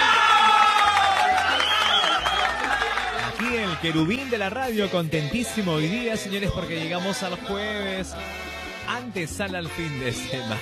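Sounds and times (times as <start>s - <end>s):
applause: 0.0s - 4.1s
speech: 3.8s - 10.5s.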